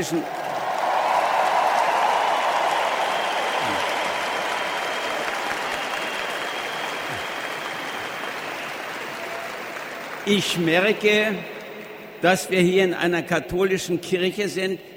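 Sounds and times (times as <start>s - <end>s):
speech: 0.0s - 0.4s, 10.3s - 11.5s, 12.2s - 14.9s
applause from pilgrims in a basilica: 0.0s - 11.4s.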